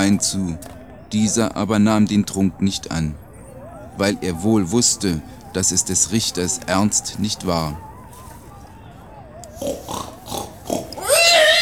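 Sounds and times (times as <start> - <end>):
speech: 0.0 - 3.2, 4.0 - 7.9
laughter: 0.0 - 11.6
pig grunting and oinking: 9.5 - 11.6.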